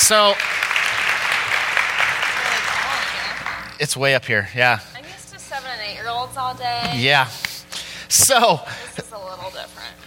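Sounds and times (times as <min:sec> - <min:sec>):
speech: 0:00.0 - 0:00.6, 0:03.8 - 0:04.9, 0:06.0 - 0:07.4, 0:08.1 - 0:10.0
audience applause welcoming a speaker to the stage: 0:00.0 - 0:03.7.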